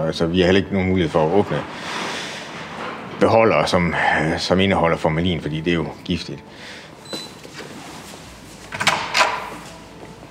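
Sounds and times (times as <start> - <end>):
speech: 0.1 - 2.1, 3.2 - 6.8
extra door swinging open as people walk in: 7.0 - 7.8, 8.6 - 9.8.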